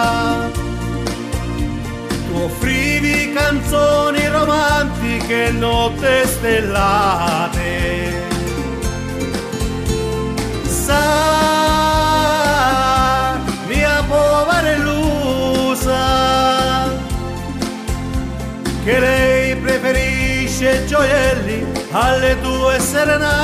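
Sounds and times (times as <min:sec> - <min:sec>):
Andalusian guitar playing: 0:00.0 - 0:23.4.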